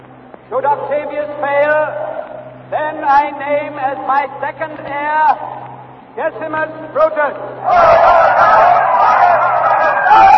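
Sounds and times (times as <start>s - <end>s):
speech: 0.5s - 5.6s, 6.2s - 9.5s
Roman crowd denouncing Caesar's assassins and calling for vengeance: 7.6s - 10.3s.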